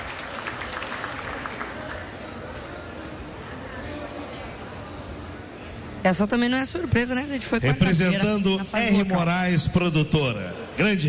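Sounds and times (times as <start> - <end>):
applause: 0.0 - 2.7
speech: 6.0 - 11.0.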